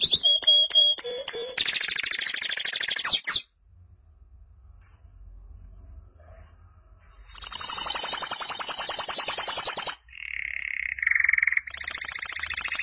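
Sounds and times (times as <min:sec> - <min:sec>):
canary trilling: 0:00.0 - 0:03.4, 0:07.2 - 0:12.8.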